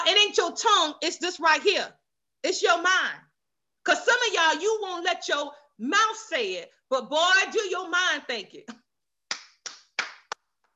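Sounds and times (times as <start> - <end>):
speech: 0.1 - 8.8
audience clapping: 9.3 - 10.6.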